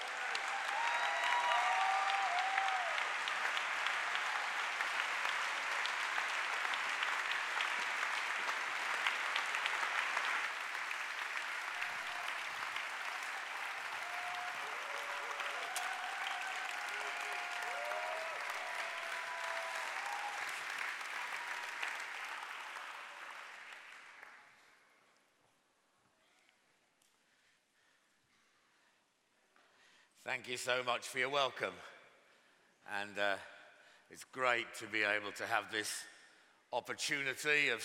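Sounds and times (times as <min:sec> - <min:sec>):
faint voices and whoops: 0:00.0 - 0:03.2, 0:11.7 - 0:22.0
audience applause: 0:00.0 - 0:24.7
speech: 0:30.2 - 0:31.9, 0:32.9 - 0:33.5, 0:34.1 - 0:36.1, 0:36.7 - 0:37.8.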